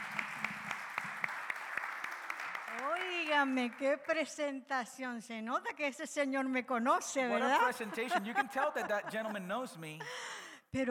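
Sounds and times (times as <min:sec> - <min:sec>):
church congregation clapping to welcome a woman giving a testimony: 0:00.0 - 0:04.3
speech: 0:03.3 - 0:10.8
laughter: 0:07.3 - 0:10.3.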